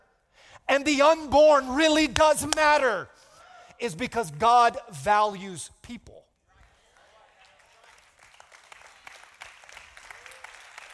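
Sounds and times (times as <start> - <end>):
speech: 0.7 - 3.2, 3.8 - 6.3
audience clapping: 6.6 - 10.9.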